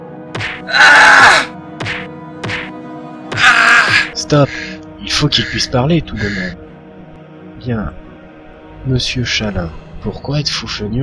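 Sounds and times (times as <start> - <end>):
person crying in pain under torture: 0.6 - 1.5, 3.3 - 4.2
speech: 0.7 - 1.0, 4.3 - 6.6, 7.6 - 8.0, 8.8 - 11.0
thudding blows under torture: 1.8 - 4.0
person groaning under torture: 3.3 - 4.1.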